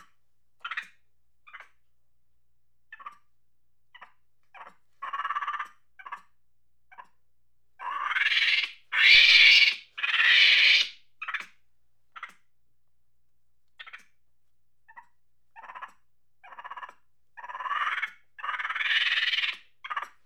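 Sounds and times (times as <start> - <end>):
monkey chattering angrily with screeches and squeaks: 7.8 - 11.4, 15.6 - 20.1.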